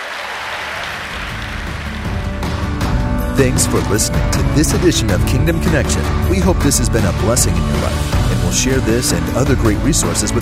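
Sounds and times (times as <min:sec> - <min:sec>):
audience clapping hands: 0:00.0 - 0:03.2
speech: 0:03.4 - 0:10.4.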